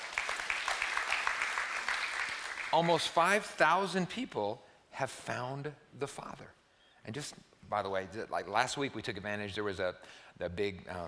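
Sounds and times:
audience clapping: 0.0s - 3.4s
speech: 2.8s - 11.0s.

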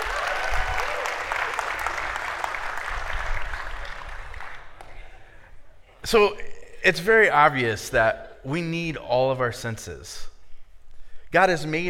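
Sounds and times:
crowd clapping in a round of applause: 0.0s - 5.3s
speech: 6.1s - 10.3s, 11.3s - 11.8s.

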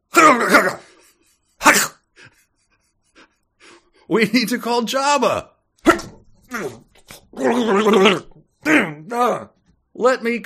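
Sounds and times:
person imitating harsh yelling and a struggle: 0.1s - 0.8s, 7.4s - 9.5s
speech: 4.1s - 5.5s, 7.4s - 8.3s, 10.0s - 10.4s.

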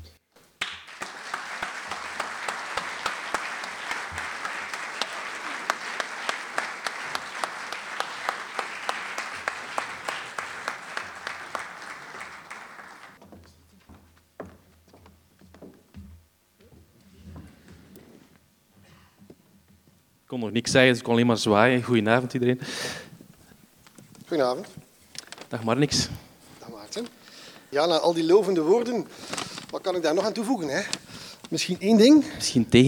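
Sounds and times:
warm audience applause: 0.6s - 13.2s
speech: 20.4s - 23.0s, 24.3s - 24.8s, 25.5s - 26.2s, 27.7s - 32.8s.

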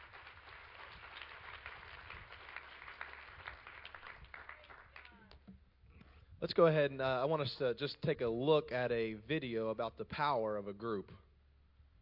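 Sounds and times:
audience clapping hands: 0.0s - 5.4s
speech: 6.4s - 11.2s.

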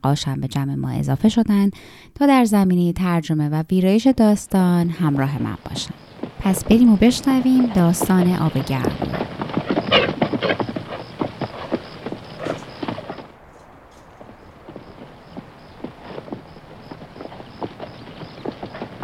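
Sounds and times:
speech: 0.0s - 10.7s
horses' hooves clip-clopping: 4.9s - 19.0s.

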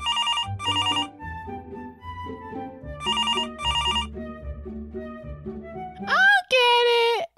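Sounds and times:
telephone ringing: 0.0s - 1.2s, 3.0s - 4.2s
soft low music: 0.5s - 6.5s
person speaking: 6.0s - 7.3s.

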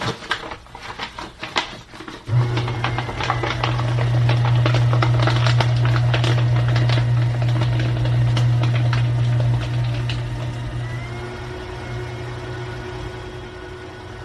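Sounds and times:
paper rustling and handling: 0.0s - 8.2s
small shredder cooling fan running: 2.2s - 14.2s.

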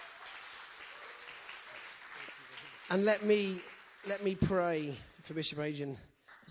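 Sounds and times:
church audience applause welcoming a visiting bishop: 0.0s - 5.0s
speech: 2.9s - 6.4s.

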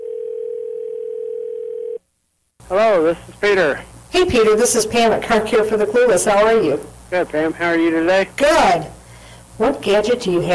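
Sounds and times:
telephone dial tone: 0.0s - 2.0s
speech: 2.7s - 9.0s, 9.6s - 10.5s.

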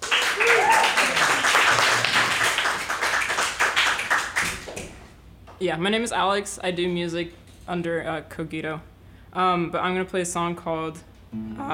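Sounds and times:
audience applause at a live music show: 0.0s - 5.0s
person cheering: 0.1s - 1.5s
speech: 5.6s - 11.7s.

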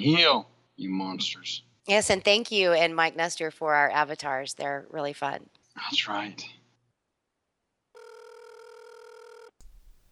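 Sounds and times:
speech: 0.0s - 6.6s
telephone ringing: 8.0s - 9.6s.

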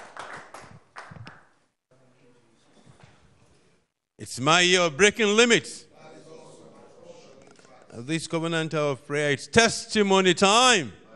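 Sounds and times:
audience clapping: 0.0s - 1.6s
speech: 4.2s - 5.8s, 8.0s - 11.0s.

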